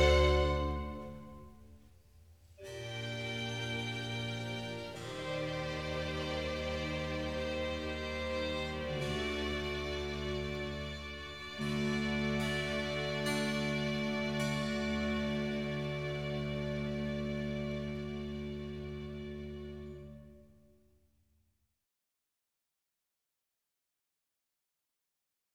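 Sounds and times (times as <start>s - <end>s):
slow organ concerto movement in G minor: 0.0s - 1.6s, 2.6s - 20.4s.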